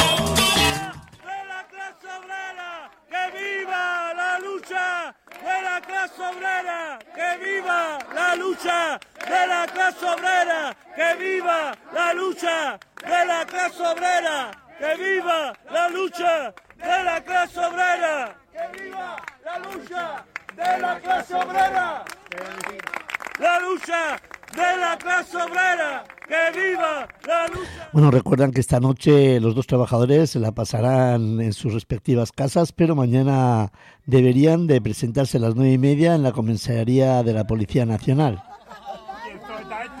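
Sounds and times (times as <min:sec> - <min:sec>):
applause from families and colleagues: 0:00.2 - 0:28.0
speech: 0:28.3 - 0:38.5
laughter: 0:38.0 - 0:39.9.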